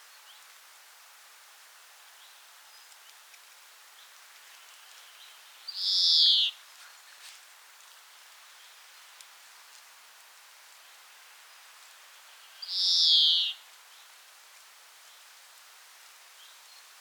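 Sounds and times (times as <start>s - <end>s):
European Greenfinch Chloris chloris in Dwingelderveld Holland: 5.7s - 6.6s, 12.6s - 13.6s.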